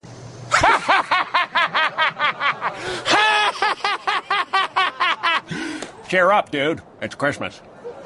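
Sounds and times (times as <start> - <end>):
laughter: 0.5 - 6.1
people cheering: 1.7 - 6.1.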